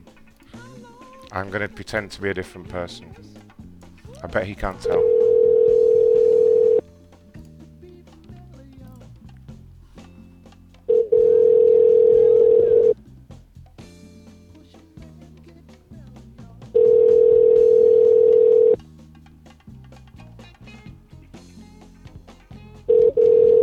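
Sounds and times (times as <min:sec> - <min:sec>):
speech: 0:01.3 - 0:03.4, 0:04.2 - 0:05.1
telephone ringback tone while calling back: 0:04.8 - 0:06.8, 0:10.9 - 0:13.0, 0:16.8 - 0:18.8, 0:22.9 - 0:23.6.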